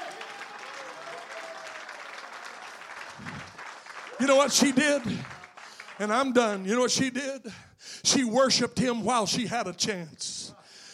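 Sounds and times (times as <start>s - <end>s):
audience clapping: 0.0s - 7.1s
speech: 4.2s - 5.4s, 6.0s - 10.4s.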